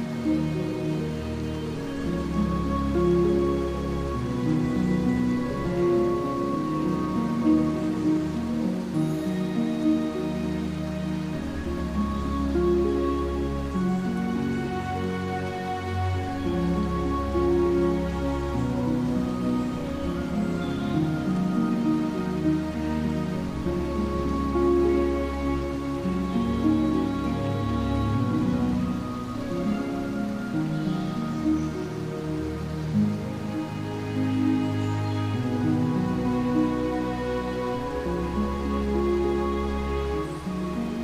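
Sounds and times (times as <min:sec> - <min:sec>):
soft dreamy Celtic music: 0:00.0 - 0:41.0.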